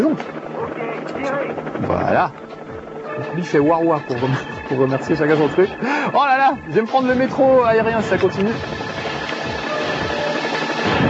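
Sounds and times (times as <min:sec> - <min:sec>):
speech: 0:00.0 - 0:02.5, 0:03.2 - 0:08.8
video game helicopter exploding: 0:04.0 - 0:11.0.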